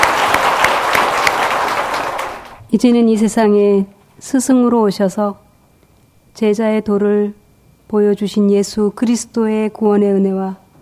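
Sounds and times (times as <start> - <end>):
church congregation applauding: 0.0 - 2.6
speech: 2.7 - 5.4, 6.4 - 10.6.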